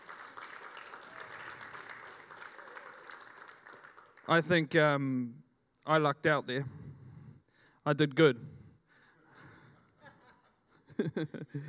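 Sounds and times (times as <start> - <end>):
audience applause during a church talk: 0.0 - 4.4
speech: 4.3 - 6.8, 7.9 - 8.6, 11.1 - 11.6
laughter: 9.4 - 11.6.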